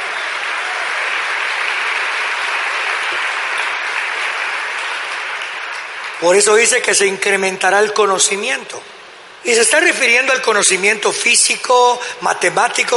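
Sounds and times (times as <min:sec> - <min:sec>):
audience applause: 0:00.0 - 0:06.9
speech: 0:06.2 - 0:12.9.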